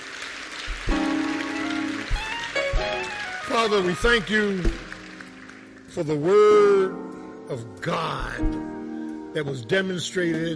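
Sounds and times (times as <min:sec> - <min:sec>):
audience applause: 0:00.0 - 0:06.0
speech: 0:03.6 - 0:04.8, 0:06.0 - 0:10.5
soft low thumps: 0:08.2 - 0:08.8.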